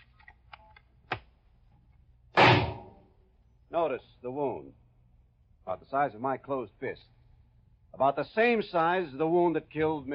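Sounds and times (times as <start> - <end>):
shotgun fired from eight feet in a demonstration: 2.4 - 3.0
thump: 2.4 - 3.0
speech: 3.8 - 4.8, 5.7 - 7.2, 7.9 - 10.1.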